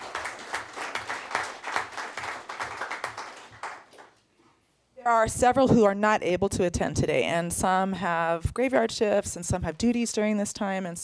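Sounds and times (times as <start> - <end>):
crowd applauding: 0.0 - 4.2
speech: 5.0 - 11.0.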